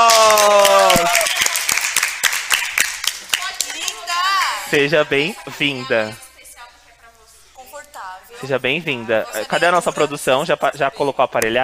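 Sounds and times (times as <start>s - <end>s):
applause welcoming a guest on stage: 0.0s - 3.5s
speech: 4.7s - 6.2s, 8.4s - 11.6s
laughter: 8.4s - 11.6s.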